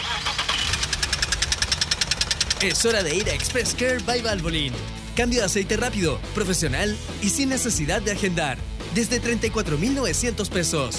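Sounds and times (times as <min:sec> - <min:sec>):
car engine knocking with metallic ticking over idling rumble: 0:00.0 - 0:05.3
speech: 0:02.6 - 0:10.9.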